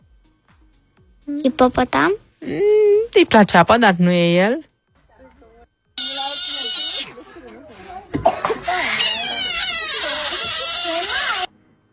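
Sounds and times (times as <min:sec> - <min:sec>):
speech: 0:01.3 - 0:04.7
baby otter squealing: 0:06.0 - 0:07.2, 0:08.6 - 0:11.5.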